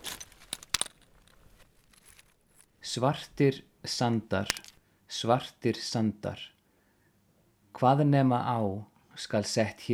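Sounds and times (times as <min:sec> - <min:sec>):
rocks clinking: 0:00.0 - 0:02.7
speech: 0:02.9 - 0:06.6, 0:07.8 - 0:09.9.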